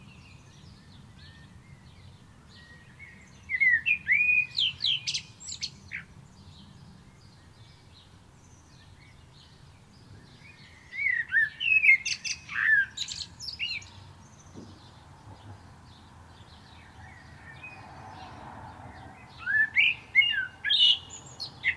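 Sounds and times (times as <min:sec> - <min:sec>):
common blackbird singing: 0:00.0 - 0:21.7.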